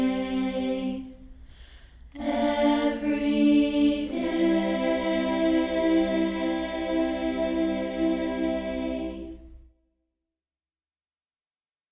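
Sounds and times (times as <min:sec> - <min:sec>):
a cappella singing: 0:00.0 - 0:01.5, 0:02.1 - 0:09.6.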